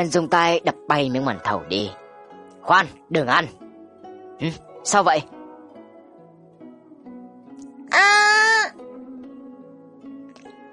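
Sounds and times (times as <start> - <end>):
speech: 0.0 - 2.0, 2.6 - 3.6, 4.4 - 5.4, 7.9 - 8.2
woman screaming: 7.9 - 8.8.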